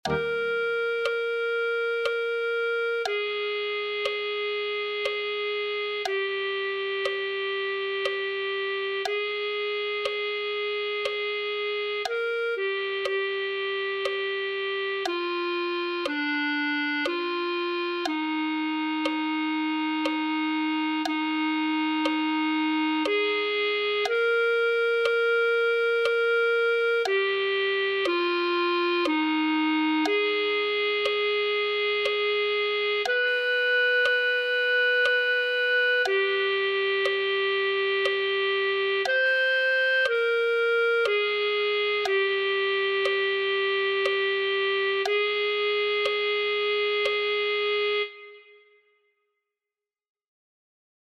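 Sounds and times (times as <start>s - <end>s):
clarinet: 0.0s - 48.9s.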